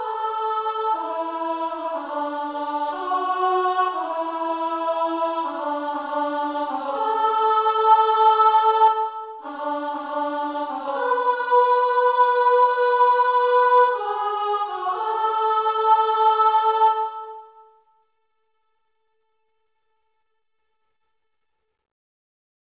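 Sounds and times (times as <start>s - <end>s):
alto voice singing: 0.0s - 17.8s.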